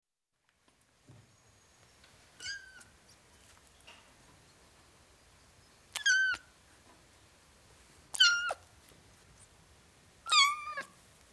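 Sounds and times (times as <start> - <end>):
ten-week-old domestic kitten meowing: 6.0 - 6.4, 8.1 - 8.6, 10.3 - 11.0.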